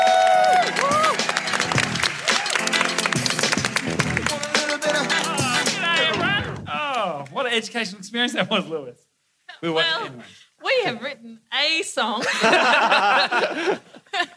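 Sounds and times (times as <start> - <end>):
audience applause and cheering: 0.0 - 7.4
speech: 7.6 - 14.3
laughter: 12.2 - 14.3.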